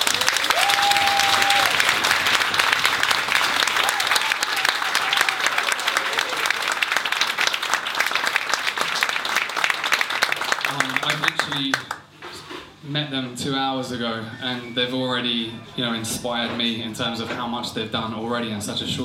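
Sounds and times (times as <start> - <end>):
audience applause: 0.0 - 12.1
speech: 13.2 - 19.0.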